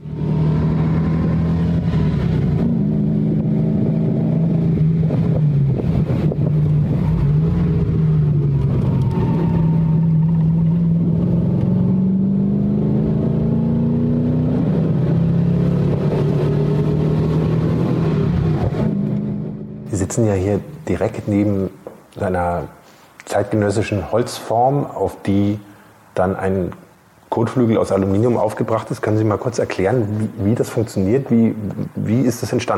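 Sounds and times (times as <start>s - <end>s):
BMW 507 sports car driven hard: 0.0s - 20.2s
speech: 20.2s - 32.7s.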